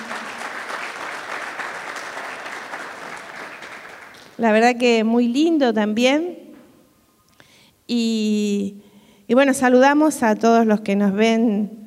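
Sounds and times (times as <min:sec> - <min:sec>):
crowd applauding: 0:00.0 - 0:04.4
speech: 0:04.4 - 0:06.4, 0:07.9 - 0:11.8.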